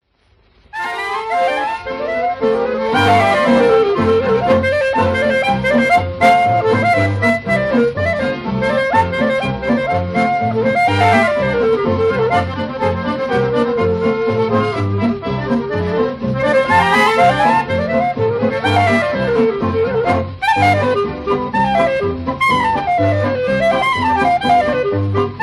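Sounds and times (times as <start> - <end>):
jazz orchestra: 0.6 - 25.4.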